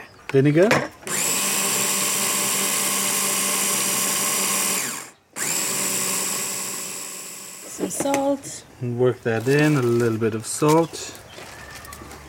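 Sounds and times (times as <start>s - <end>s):
speech: 0.3s - 0.9s, 8.0s - 11.2s
blender blitzing ingredients at high speed: 1.0s - 8.0s.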